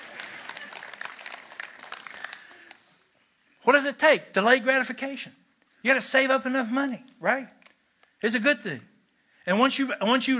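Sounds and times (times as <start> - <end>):
audience applause: 0.0 - 3.0
speech: 3.6 - 7.6, 8.2 - 8.9, 9.5 - 10.3.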